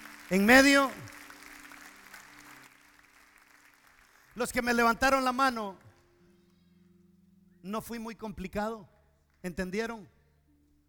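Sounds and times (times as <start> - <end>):
audience applause: 0.0 - 4.4
speech: 0.3 - 1.1, 4.4 - 5.8, 7.6 - 10.2.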